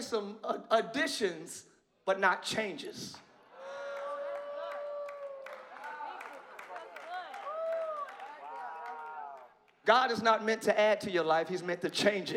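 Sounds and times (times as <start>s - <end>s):
speech: 0.0s - 3.3s, 9.8s - 12.3s
crowd audience clapping: 3.6s - 9.8s.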